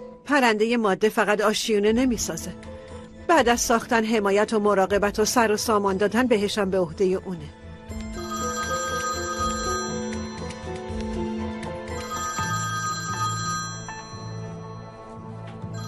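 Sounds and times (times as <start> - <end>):
speech: 0.3 - 2.7, 3.3 - 7.6
telephone ringing electronically: 8.0 - 10.8, 11.9 - 15.1, 15.7 - 15.8.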